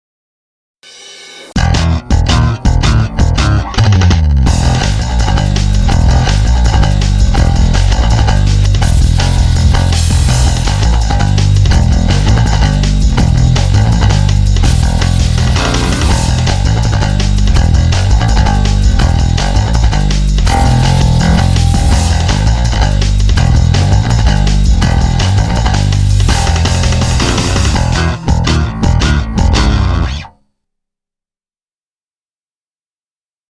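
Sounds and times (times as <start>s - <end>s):
ME-20B guitar effects patch: 0.8s - 30.3s.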